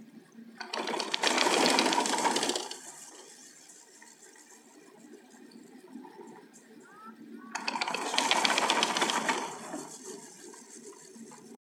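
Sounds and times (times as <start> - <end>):
ski chairlift in Arosa: 0.6 - 3.5, 7.6 - 10.5.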